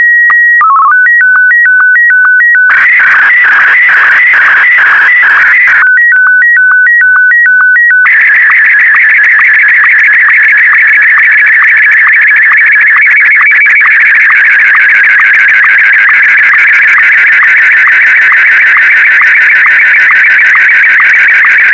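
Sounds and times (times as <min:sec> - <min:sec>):
SSTV signal: 0:00.0 - 0:21.7.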